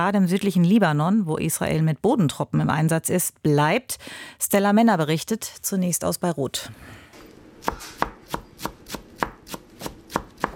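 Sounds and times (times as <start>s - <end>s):
speech: 0.0s - 7.0s
chef's knife chopping herbs for chicken marinade on a board: 7.6s - 10.5s.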